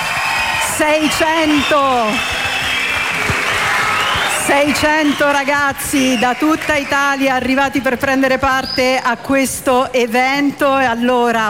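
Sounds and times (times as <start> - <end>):
voices cheering: 0.0 - 7.5
crowd of young people clapping in a steady rhythm: 0.0 - 8.2
speech: 0.8 - 2.4, 4.5 - 11.4.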